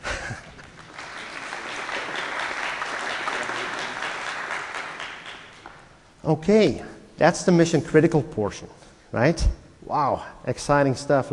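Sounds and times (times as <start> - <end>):
crowd applause: 0.0 - 5.9
speech: 6.3 - 11.3.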